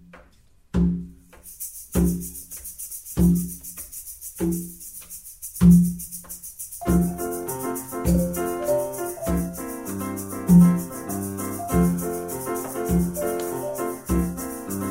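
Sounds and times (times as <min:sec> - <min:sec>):
samba song: 0:00.8 - 0:05.0, 0:05.6 - 0:14.8.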